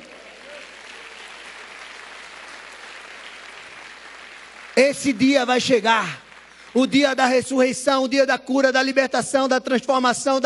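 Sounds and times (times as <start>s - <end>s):
audience applause: 0.0s - 7.5s
speech: 4.8s - 6.2s, 6.8s - 10.4s.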